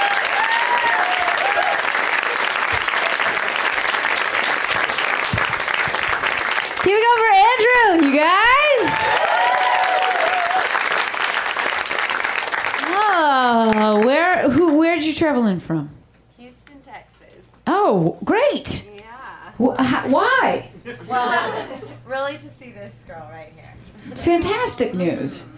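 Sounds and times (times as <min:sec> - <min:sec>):
audience applause: 0:00.0 - 0:14.4
laughter: 0:02.8 - 0:03.6, 0:20.8 - 0:22.0
speech: 0:07.6 - 0:09.0, 0:13.7 - 0:15.9, 0:17.8 - 0:18.8, 0:19.6 - 0:25.5.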